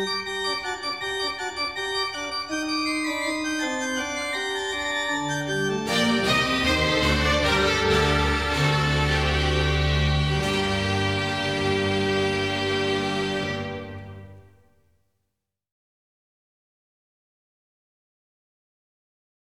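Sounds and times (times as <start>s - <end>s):
organ concerto allegro movement played by organ and orchestra: 0.0s - 14.6s.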